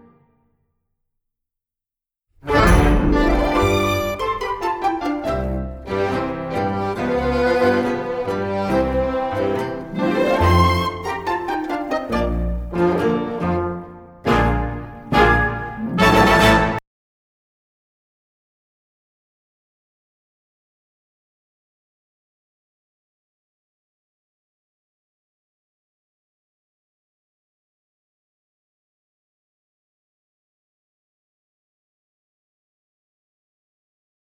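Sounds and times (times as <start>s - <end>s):
tango audition accompaniment: 2.5s - 16.8s.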